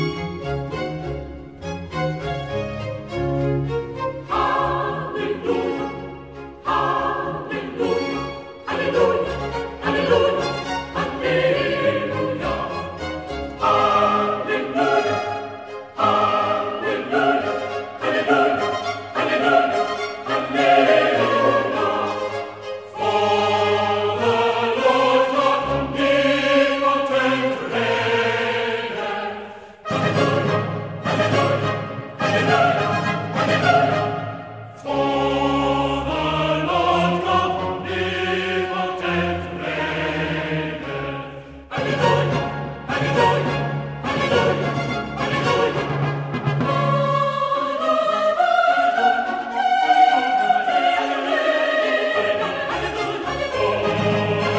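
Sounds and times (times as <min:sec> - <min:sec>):
baroque alleluia: 0:00.1 - 0:54.5.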